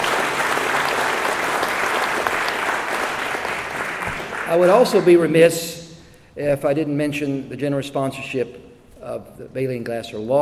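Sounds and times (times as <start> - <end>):
round of applause: 0.0 - 5.1
speech: 4.5 - 5.8, 6.4 - 10.3.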